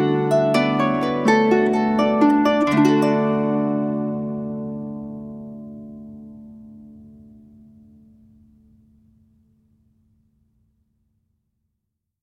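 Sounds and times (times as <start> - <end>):
harp: 0.0 - 7.3.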